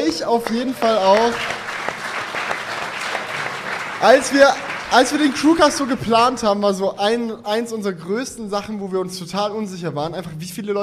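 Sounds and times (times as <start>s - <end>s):
live audience applause from a sizable crowd: 0.0s - 6.2s
speech: 0.1s - 1.6s, 4.0s - 10.8s.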